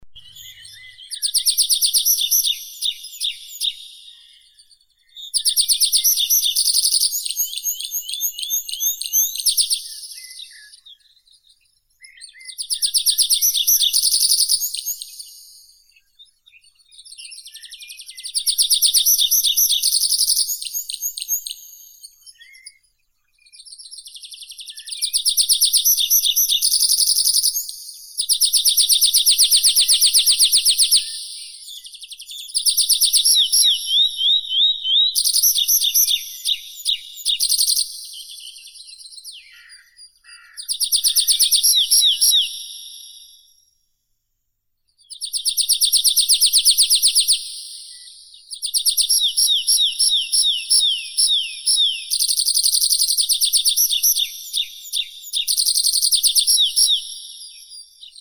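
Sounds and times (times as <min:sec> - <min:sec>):
Anthus trivialis singing: 0:00.1 - 0:11.2, 0:12.0 - 0:22.8, 0:23.5 - 0:43.2, 0:45.1 - 0:58.1.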